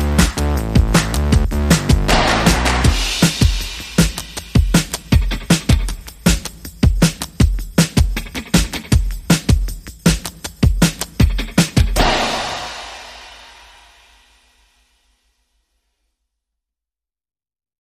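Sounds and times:
rhythm: 0.0s - 14.2s.

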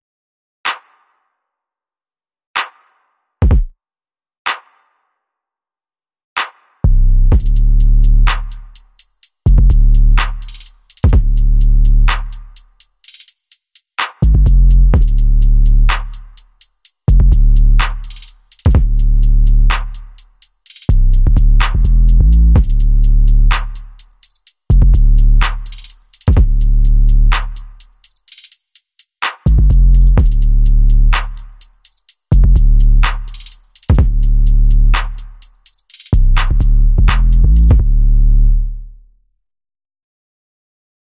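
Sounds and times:
drums: 0.7s - 1.1s, 2.6s - 3.7s, 4.5s - 4.9s, 6.4s - 38.0s
bass: 6.8s - 12.9s, 14.1s - 28.0s, 29.4s - 39.3s.

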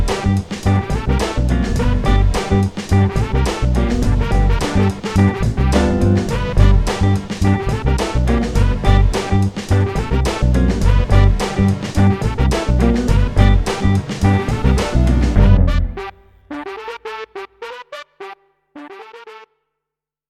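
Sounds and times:
funky happy hip hop beat: 0.0s - 16.2s.

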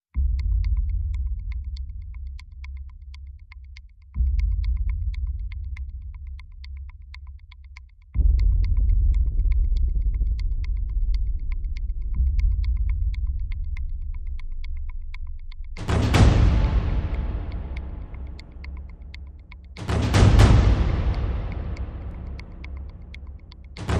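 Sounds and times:
percussion: 0.0s - 23.9s
sound effects: 15.8s - 23.9s.

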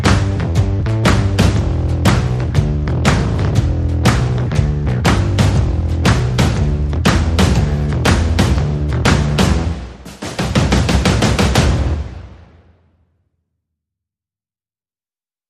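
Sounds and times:
bass in a shuffle groove: 0.0s - 9.9s, 10.6s - 12.1s
percussion in a shuffle groove: 0.0s - 12.3s.

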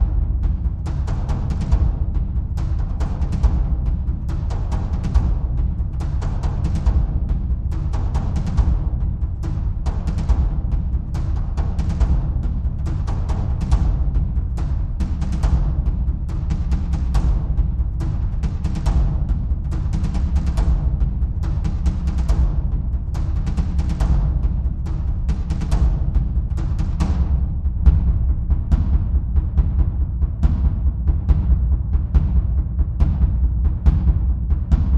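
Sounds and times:
deep drums loop: 0.0s - 34.9s.

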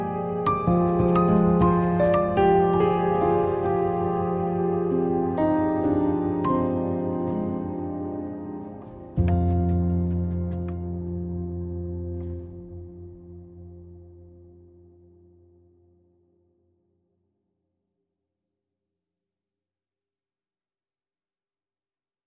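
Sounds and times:
pianos playing: 0.0s - 15.0s.

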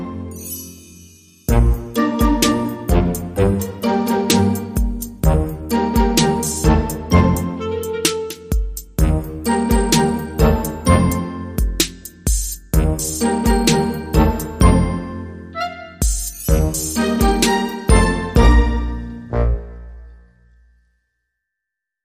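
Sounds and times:
funny little orchestra underscore: 1.5s - 11.8s, 12.8s - 20.2s
electronic drums: 1.5s - 14.9s, 16.0s - 18.6s.

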